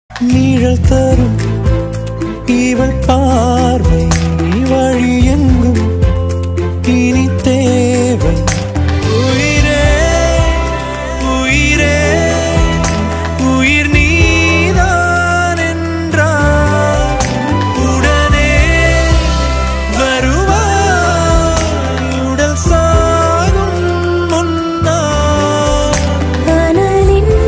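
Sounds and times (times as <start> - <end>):
Tamil ringtone: 0.2 - 27.4.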